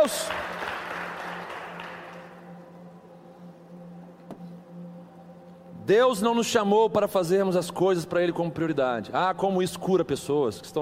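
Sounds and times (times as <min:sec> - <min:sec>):
speech: 0:00.0 - 0:00.5, 0:05.9 - 0:10.7
applause: 0:00.0 - 0:02.4.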